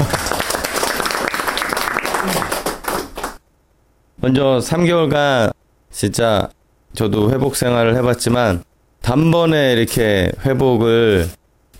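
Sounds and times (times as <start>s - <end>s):
audience applause: 0.0s - 3.4s
speech: 4.2s - 11.7s.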